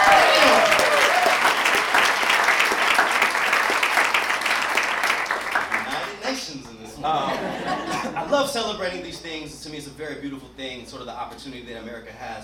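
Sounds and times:
audience applause: 0.0s - 6.2s
laughter: 7.0s - 8.8s
speech: 8.6s - 12.4s.

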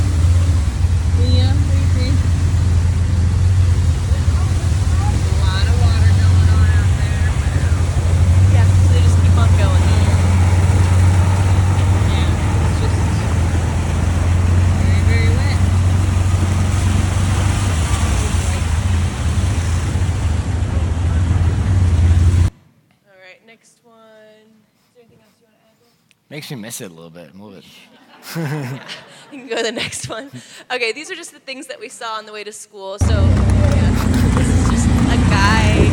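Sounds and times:
tuk-tuk riding in the rain: 0.0s - 22.5s, 33.0s - 35.9s
speech: 26.4s - 34.4s
laughter: 27.8s - 30.6s, 33.2s - 35.9s.

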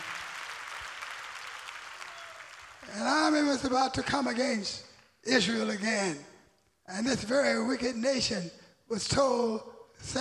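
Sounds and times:
audience clapping hands: 0.0s - 3.6s
speech: 2.9s - 6.3s, 6.9s - 10.1s.

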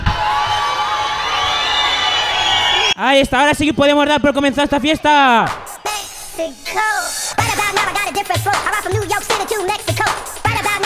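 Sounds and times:
crowd cheering and shouting: 0.0s - 7.2s
speech: 3.0s - 5.7s, 6.4s - 10.8s.

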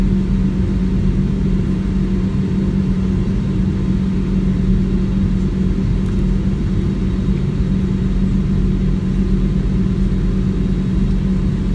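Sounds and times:
aircraft takeoff at JFK: 0.0s - 11.7s.

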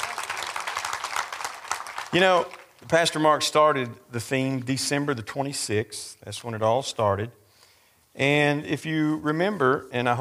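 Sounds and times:
audience applause: 0.0s - 3.0s
speech: 2.1s - 7.4s, 8.2s - 10.1s.

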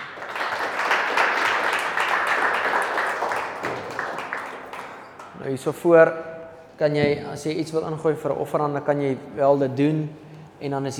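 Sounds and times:
audience applauding: 0.0s - 5.4s
speech: 5.5s - 10.9s.

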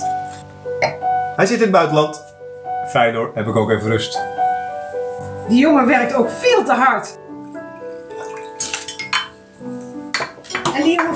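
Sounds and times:
drinking glasses clinking: 0.8s - 1.0s, 7.8s - 9.5s, 10.1s - 11.1s
speech: 0.8s - 2.3s, 2.9s - 4.3s, 5.5s - 7.2s.

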